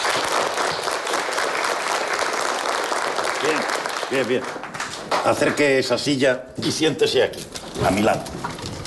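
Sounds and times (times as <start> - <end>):
group applauding to welcome a new classmate: 0.0 - 6.1
speech: 3.4 - 8.7.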